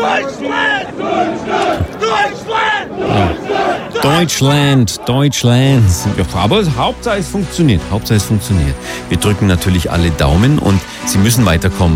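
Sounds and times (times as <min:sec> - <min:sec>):
fans in America chanting for a team: 0:00.0 - 0:06.3
speech: 0:00.2 - 0:11.9.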